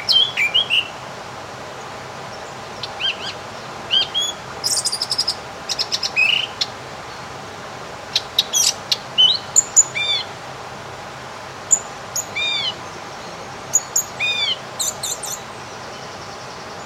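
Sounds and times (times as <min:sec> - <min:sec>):
birds singing: 0:01.8 - 0:07.3, 0:08.1 - 0:10.3, 0:11.7 - 0:16.8.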